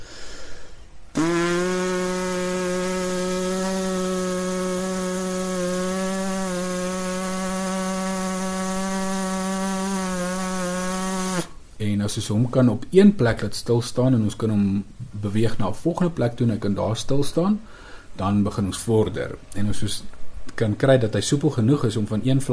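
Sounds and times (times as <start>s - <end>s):
brass player's lip buzzing: 1.1s - 11.6s
speech: 11.9s - 22.5s.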